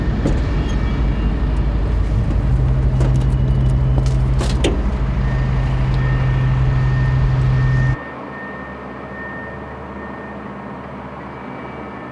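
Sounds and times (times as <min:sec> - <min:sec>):
low hum: 0:00.0 - 0:09.2
vehicle engine rumble around Telliskivi: 0:00.0 - 0:11.1.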